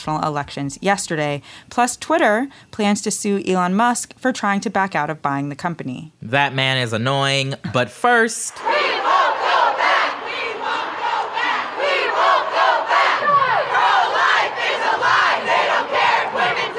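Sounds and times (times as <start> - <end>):
speech: 0.0 - 9.4
hundreds of demonstrators chanting at a protest in D.C.: 8.5 - 16.7.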